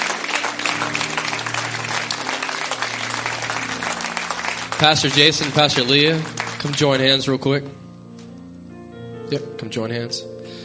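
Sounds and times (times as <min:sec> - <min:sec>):
church congregation applauding and cheering in praise of Jesus: 0:00.0 - 0:07.3
speech: 0:04.8 - 0:07.8, 0:09.3 - 0:10.4.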